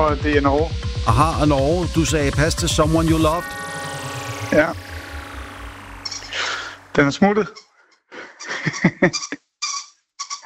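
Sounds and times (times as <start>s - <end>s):
speech: 0.0s - 3.6s, 4.5s - 4.9s, 7.0s - 7.6s, 8.6s - 9.4s
laughter: 8.2s - 9.4s
small dog playing with squeaky toy: 9.2s - 10.4s.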